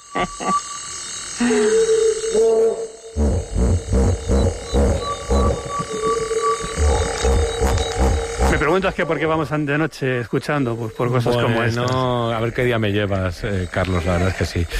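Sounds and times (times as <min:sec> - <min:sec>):
thin steady insect-like hum: 0:00.0 - 0:14.7
speech: 0:00.1 - 0:00.8, 0:01.4 - 0:02.9, 0:08.8 - 0:14.7
hippopotamus grunting: 0:03.2 - 0:09.0.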